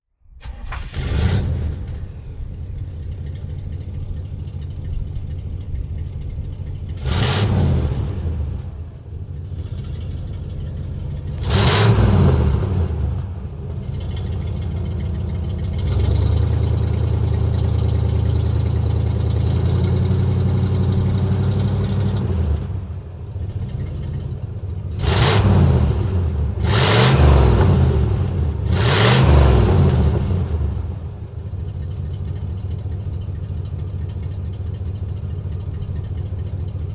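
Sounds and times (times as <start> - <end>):
Cadillac Fleetwood Sixty Special oldtimer car: 0.2 - 36.9.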